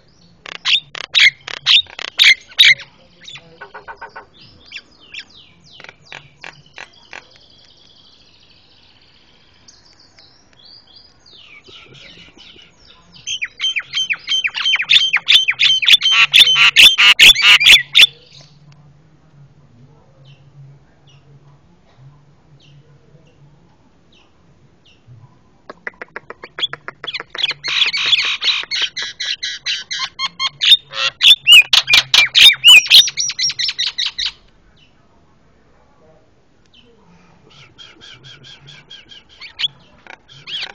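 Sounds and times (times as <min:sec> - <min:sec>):
Javan myna chatter and whistles: 0:00.6 - 0:07.4, 0:11.6 - 0:18.6, 0:25.9 - 0:34.4, 0:36.8 - 0:40.7.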